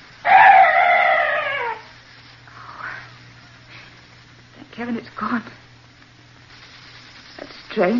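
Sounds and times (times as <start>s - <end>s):
strange bird crying in the dark: 0.2s - 1.9s
speech: 4.8s - 5.6s, 7.8s - 7.9s.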